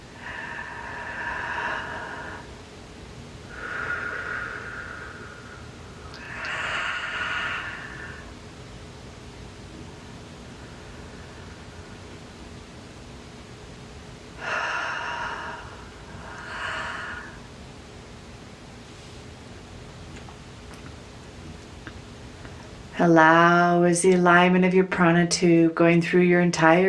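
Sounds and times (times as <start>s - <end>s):
deep slow breathing during a guided meditation: 0.0s - 2.7s, 3.4s - 8.4s, 9.9s - 12.4s, 14.4s - 17.6s
speech: 23.0s - 26.8s.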